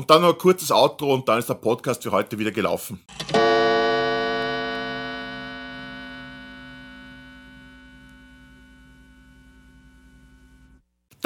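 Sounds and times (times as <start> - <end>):
speech: 0.0 - 3.2
gong marking a cut: 3.4 - 9.7.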